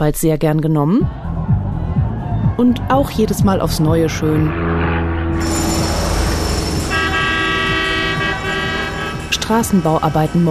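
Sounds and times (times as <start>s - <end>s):
speech: 0.0s - 1.3s, 2.6s - 5.7s, 9.5s - 10.4s
truck noise: 3.0s - 10.4s
truck horn honking: 5.3s - 10.4s.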